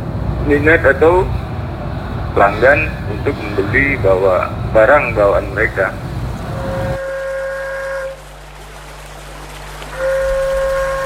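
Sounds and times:
low rumble: 0.0 - 11.0
speech: 0.5 - 1.4, 2.3 - 6.0
traditional paret flute blown to call buyers: 6.4 - 8.9, 9.5 - 11.0.

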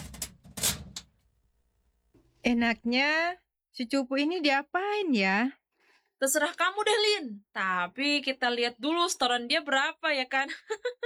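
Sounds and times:
door being locked with metallic clicks and rattles: 0.0 - 1.1
speech: 2.4 - 5.6, 6.2 - 11.0.

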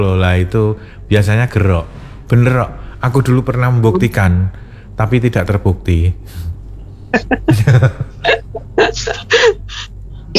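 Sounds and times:
speech: 0.0 - 6.5, 7.1 - 9.6
low hum: 0.0 - 10.3
person coughing: 7.2 - 9.7
laughter: 7.2 - 10.3.

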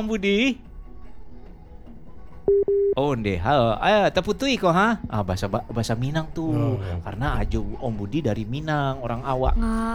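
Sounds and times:
speech: 0.0 - 0.7, 2.5 - 9.9
telephone busy tone after a call cuts off: 2.5 - 3.0.

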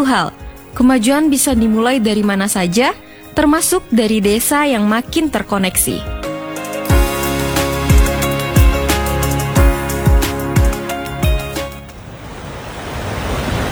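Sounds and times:
speech: 0.0 - 6.2
short rhythmic musical sting with punchy drum hits: 6.1 - 11.9
ocean waves on a beach: 11.9 - 13.7.

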